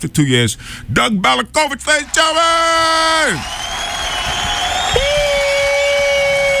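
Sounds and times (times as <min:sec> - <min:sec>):
speech: 0:00.0 - 0:03.6
studio audience applause and cheering for a returning guest: 0:01.9 - 0:06.5.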